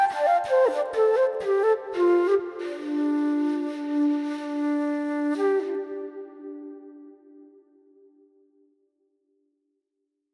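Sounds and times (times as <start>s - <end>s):
flute solo: 0.0s - 7.6s.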